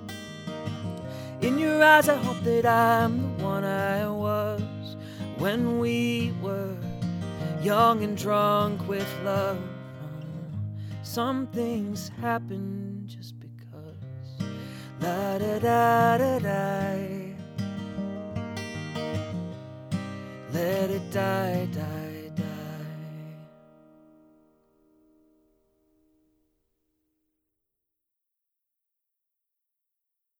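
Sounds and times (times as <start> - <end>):
music recorded with USB microphone in figure-eight mode: 0.0 - 26.5.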